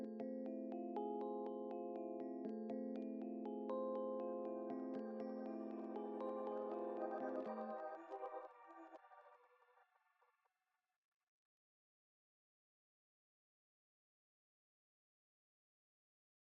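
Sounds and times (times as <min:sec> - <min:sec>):
synths and keys: 0:00.0 - 0:09.9.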